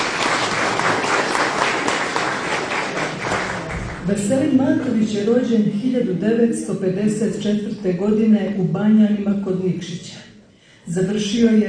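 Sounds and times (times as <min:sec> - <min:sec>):
audience applause at a book promotion event: 0:00.0 - 0:04.1
speech: 0:04.1 - 0:10.3, 0:10.9 - 0:11.6.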